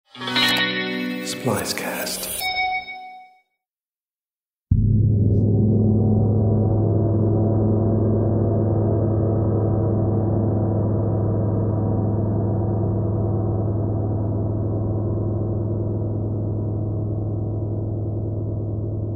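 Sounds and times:
speech: 1.4s - 2.3s
bright chime: 2.2s - 3.4s
42 inch deep ocean titanium gong struck: 4.7s - 19.1s.

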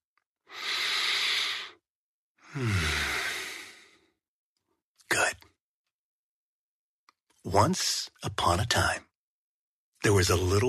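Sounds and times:
deep breath: 0.5s - 1.8s, 2.4s - 4.2s
speech: 2.5s - 3.0s, 7.4s - 9.1s, 10.0s - 10.6s.

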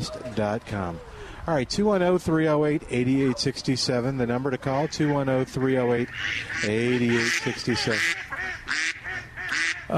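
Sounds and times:
speech: 0.0s - 8.8s
ducks quacking and honking, possibly flying overhead: 3.1s - 9.9s.

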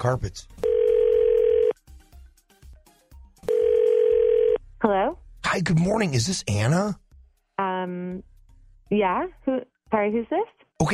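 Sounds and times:
speech: 0.0s - 0.6s, 4.8s - 7.0s, 8.9s - 10.9s
telephone ringing tone: 0.6s - 1.8s, 3.4s - 4.6s.

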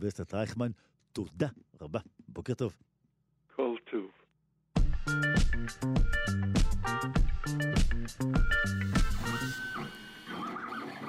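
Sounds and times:
speech: 0.0s - 2.9s, 5.2s - 9.9s
3D printer motor whining: 8.9s - 11.0s.

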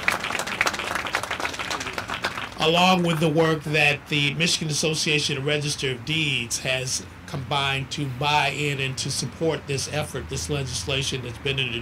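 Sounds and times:
audience applause: 0.0s - 2.8s
speech: 2.6s - 11.8s.

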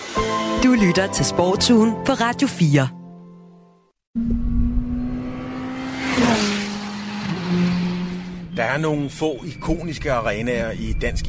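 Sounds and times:
speech: 0.6s - 3.0s, 8.8s - 11.2s
racing cars roaring at a motor circuit: 4.2s - 10.9s.

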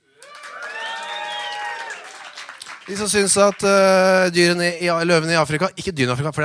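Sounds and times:
audience cheering and whooping to vote for a favourite song: 0.0s - 3.3s
speech: 2.9s - 6.4s.

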